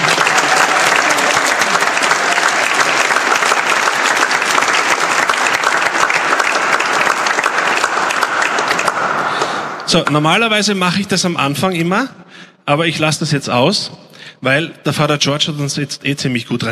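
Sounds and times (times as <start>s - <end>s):
audience applause: 0.0s - 10.4s
speech: 9.9s - 16.7s.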